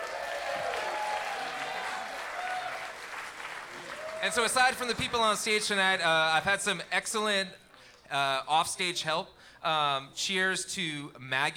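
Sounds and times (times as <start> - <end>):
scattered cheers: 0.0 - 5.8
crowd applauding: 0.0 - 6.8
speech: 4.2 - 11.5.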